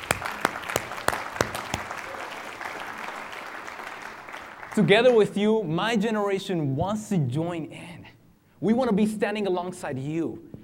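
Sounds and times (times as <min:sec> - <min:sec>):
sharp evenly spaced loud claps: 0:00.0 - 0:04.8
audience applause: 0:00.0 - 0:05.2
speech: 0:04.8 - 0:07.9, 0:08.6 - 0:10.5.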